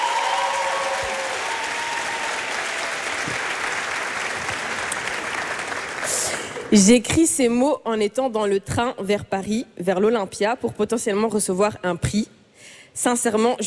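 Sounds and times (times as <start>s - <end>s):
crowd applause: 0.0s - 6.7s
speech: 6.7s - 12.3s, 13.0s - 13.6s.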